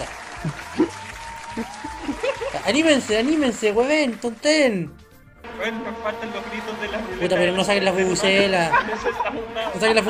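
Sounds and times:
laughter: 0:00.0 - 0:03.7, 0:05.8 - 0:10.0
audience applause: 0:00.0 - 0:04.2
speech: 0:00.4 - 0:00.8, 0:02.7 - 0:05.0, 0:05.6 - 0:10.0.

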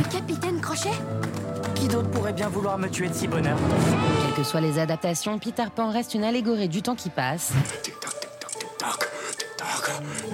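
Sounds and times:
speech: 0:00.3 - 0:08.0
clock ticking: 0:07.5 - 0:10.3.

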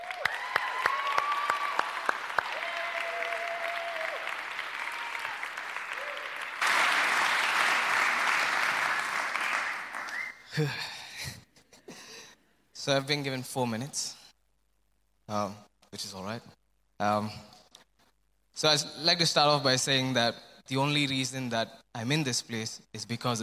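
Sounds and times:
audience applauding to welcome a speaker: 0:00.0 - 0:10.6
speech: 0:10.6 - 0:11.4, 0:12.8 - 0:14.2, 0:15.3 - 0:17.5, 0:18.6 - 0:23.4.

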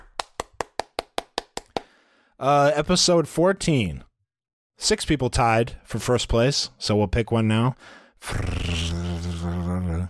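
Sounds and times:
hand claps: 0:00.0 - 0:02.0
speech: 0:02.4 - 0:04.1, 0:04.8 - 0:10.0.

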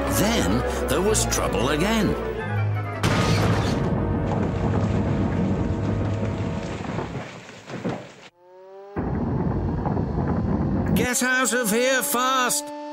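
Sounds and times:
speech: 0:00.2 - 0:02.3, 0:11.2 - 0:12.7
mine collapsing with roaring rumble: 0:03.5 - 0:08.3, 0:08.9 - 0:11.1.

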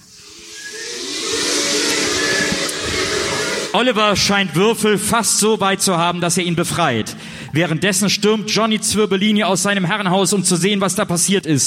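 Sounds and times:
laboratory hissing and whooshing: 0:00.0 - 0:04.0
speech: 0:03.7 - 0:11.6.

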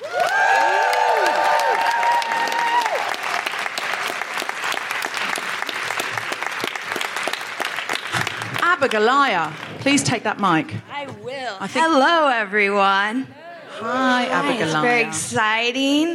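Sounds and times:
audience whooping cheers: 0:00.0 - 0:04.2
audience applause welcoming a show's co-host: 0:00.0 - 0:10.0
speech: 0:08.9 - 0:10.9, 0:11.5 - 0:16.1.

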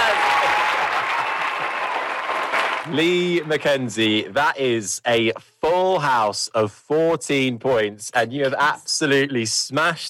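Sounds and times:
applause sound effect: 0:00.0 - 0:03.6
speech: 0:02.9 - 0:10.0.

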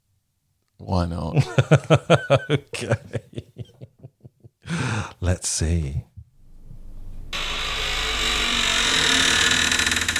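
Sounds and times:
speech: 0:00.8 - 0:03.5, 0:05.3 - 0:06.1
laughter: 0:01.4 - 0:05.1
cabinet door that needs oiling creaking open: 0:07.3 - 0:10.1.

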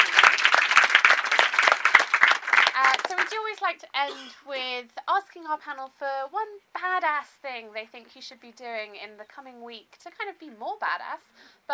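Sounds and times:
audience applause: 0:00.0 - 0:03.6
speech: 0:03.1 - 0:11.7.

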